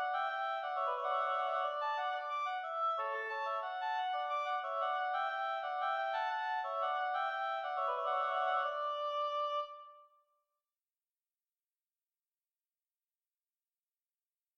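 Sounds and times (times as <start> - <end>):
two oboes playing a duet in D major: 0.0 - 10.0.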